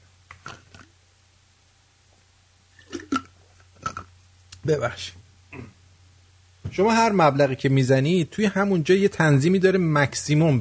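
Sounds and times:
person drinking water to stop hiccups: 0.3 - 1.0, 2.7 - 4.1
speech: 4.7 - 5.2, 6.8 - 10.5.

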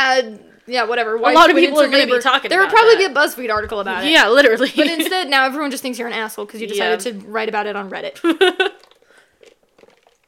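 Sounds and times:
speech: 0.0 - 8.7
person slurping a drink: 8.7 - 10.2
sips and gulping noises: 8.7 - 10.2.

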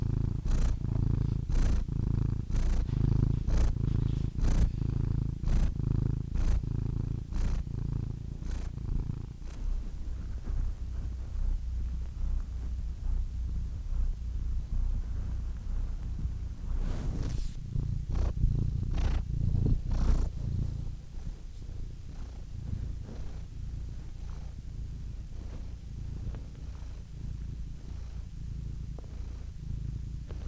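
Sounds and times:
domestic cat purring: 0.0 - 30.4
rustling and scraping: 2.6 - 5.0, 7.4 - 28.3.

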